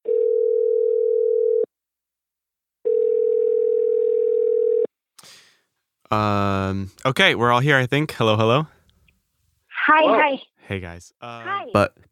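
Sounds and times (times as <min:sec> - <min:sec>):
telephone dial tone: 0:00.1 - 0:01.7, 0:02.8 - 0:04.9
speech: 0:06.1 - 0:08.8, 0:09.9 - 0:12.0.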